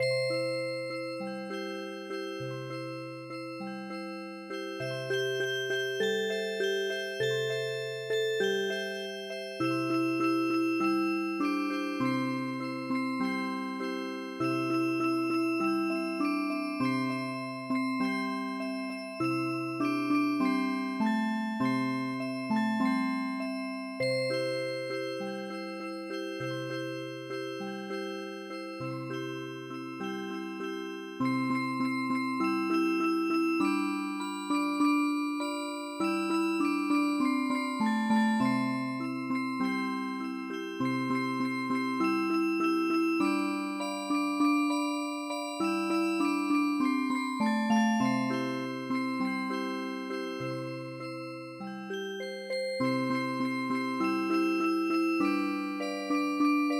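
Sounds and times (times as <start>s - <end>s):
MIDI music box melody: 0.0s - 56.7s.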